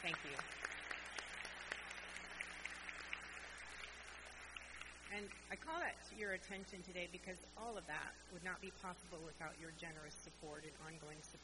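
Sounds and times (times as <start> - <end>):
speech: 0.0 - 0.7, 5.1 - 11.4
audience applause: 0.0 - 5.2.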